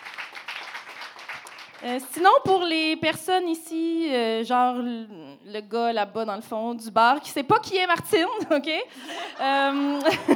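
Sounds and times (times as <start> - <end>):
audience applause: 0.0 - 1.8
speech: 1.8 - 10.3
laughter: 9.1 - 10.3.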